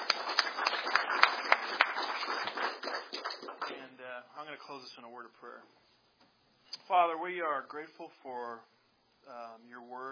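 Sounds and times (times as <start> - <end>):
audience applauding: 0.0 - 3.8
speech: 4.5 - 5.9, 6.9 - 10.1.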